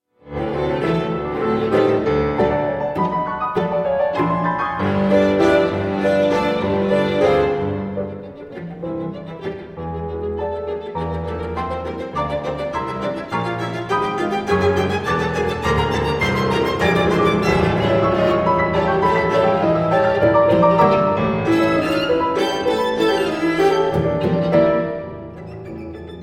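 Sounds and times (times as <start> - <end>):
trio in A minor for piano and strings: 0.2 - 26.2.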